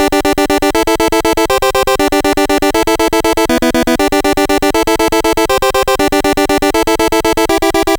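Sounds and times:
NES synth chiptune music: 0.0s - 7.9s.

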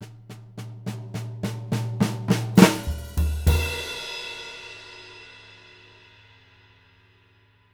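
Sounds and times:
swing live drums: 0.0s - 6.0s.

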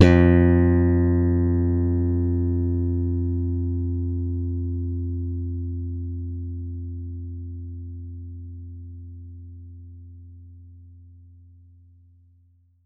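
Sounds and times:
electric bass note F2: 0.0s - 8.7s.

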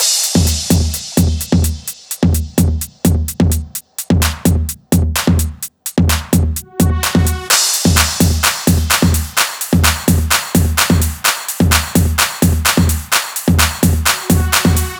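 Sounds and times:
full drum loop at 128 BPM without bass drum: 0.0s - 14.9s.

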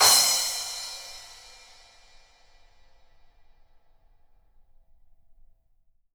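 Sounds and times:
cymbals: 0.0s - 2.2s.

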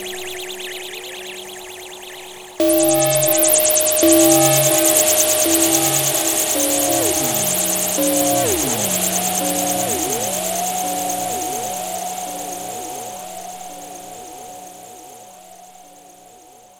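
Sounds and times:
psychic wave effect: 2.6s - 15.1s.

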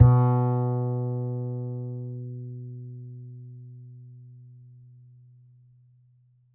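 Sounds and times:
upright bass D string: 0.0s - 3.1s.

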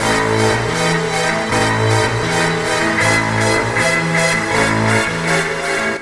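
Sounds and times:
old film strings music: 0.0s - 6.0s.

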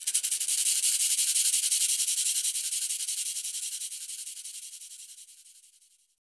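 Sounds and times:
Afro shakers shaking and rattling: 0.0s - 3.9s.

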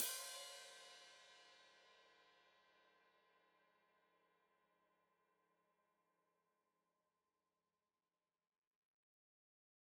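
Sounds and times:
open hi-hat played with foot: 0.0s - 1.0s.

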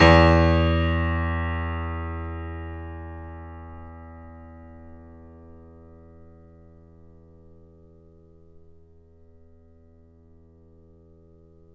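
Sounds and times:
grand piano note recorded off mic: 0.0s - 5.3s.

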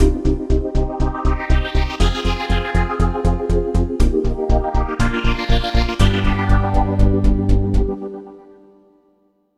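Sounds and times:
rising funk mix: 0.0s - 8.3s.

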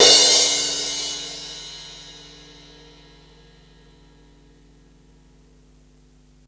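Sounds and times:
cymbals: 0.0s - 4.2s.

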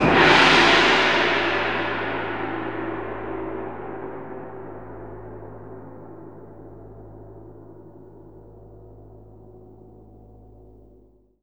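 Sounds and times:
orchestra: 0.0s - 4.8s.

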